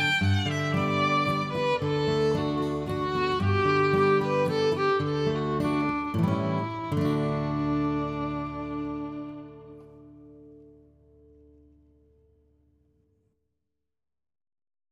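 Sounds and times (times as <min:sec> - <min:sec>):
violin: 0:00.0 - 0:11.0.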